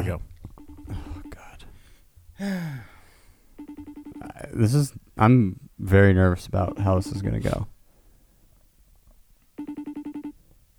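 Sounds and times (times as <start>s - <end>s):
speech: 0.1s - 0.3s, 2.4s - 2.9s, 4.5s - 7.7s
outgoing phone call ringing tone: 0.6s - 1.5s, 3.6s - 4.5s, 6.7s - 7.6s, 9.6s - 10.4s.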